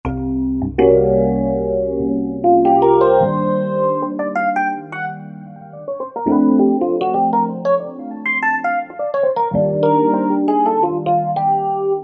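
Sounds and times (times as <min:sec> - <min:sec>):
Roland V-Synth synthesizer: 0:00.1 - 0:12.0.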